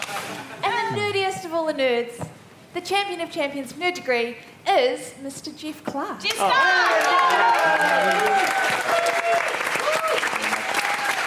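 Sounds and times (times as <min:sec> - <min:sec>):
speech: 0:00.9 - 0:09.0
cheers and whoops: 0:06.4 - 0:11.2
crowd applauding: 0:06.4 - 0:11.2.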